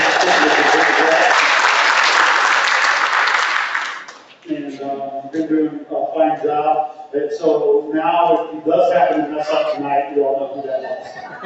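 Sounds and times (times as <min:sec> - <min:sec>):
laughter: 0:00.0 - 0:01.7, 0:10.7 - 0:11.4
audience applause for a crew member at a live event: 0:00.0 - 0:04.2
speech: 0:06.2 - 0:11.4.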